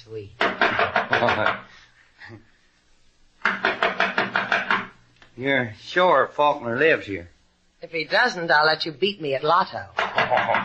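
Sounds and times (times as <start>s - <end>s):
speech: 0.0s - 2.5s, 5.4s - 10.6s
knocking on a door: 0.4s - 1.7s, 3.4s - 5.0s, 10.0s - 10.6s.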